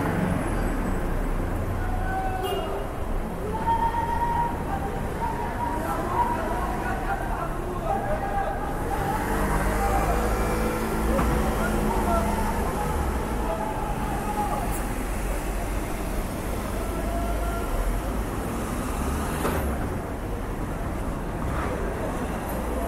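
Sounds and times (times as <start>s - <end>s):
constant low city traffic rumble: 0.0s - 22.8s
scattered voices: 1.1s - 18.5s.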